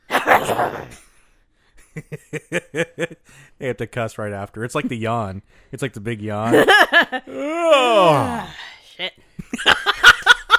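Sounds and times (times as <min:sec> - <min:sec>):
loud sneeze: 0:00.0 - 0:01.1
laughter: 0:01.9 - 0:03.2, 0:06.5 - 0:07.6, 0:09.4 - 0:10.5
speech: 0:02.0 - 0:10.1.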